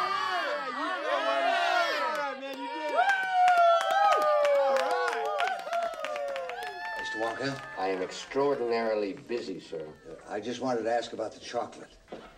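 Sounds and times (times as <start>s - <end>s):
audience cheering and whooping to welcome a comedy duo: 0.0s - 10.3s
audience applause welcoming a comedy duo: 2.0s - 10.4s
speech: 7.2s - 12.0s.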